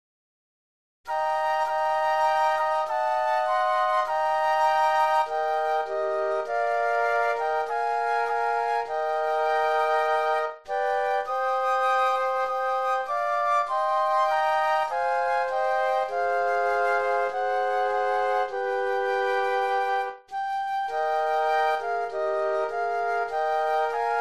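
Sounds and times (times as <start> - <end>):
flute trio playing: 1.1 - 24.1.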